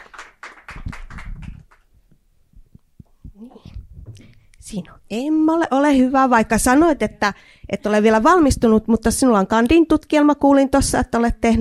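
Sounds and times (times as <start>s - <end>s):
audience applause: 0.0s - 1.9s
speech: 4.7s - 11.5s.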